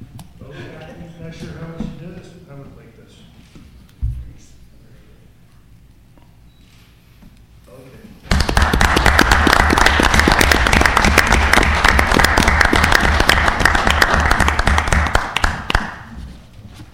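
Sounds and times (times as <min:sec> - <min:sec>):
round of applause: 0:08.3 - 0:16.1.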